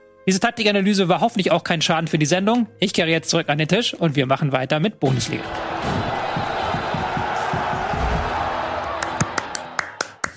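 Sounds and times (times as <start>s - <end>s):
speech: 0.3s - 6.2s
crowd applause and cheering: 5.2s - 10.3s.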